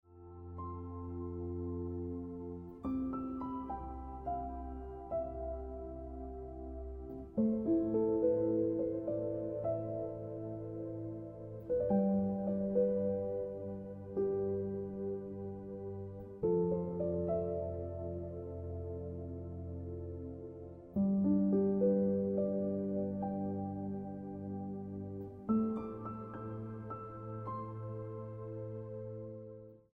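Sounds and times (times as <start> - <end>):
piano music: 0.0 - 29.9.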